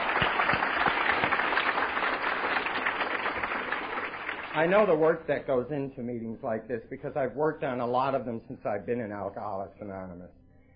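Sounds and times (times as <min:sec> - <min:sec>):
crowd applause: 0:00.0 - 0:05.0
speech: 0:04.6 - 0:10.4.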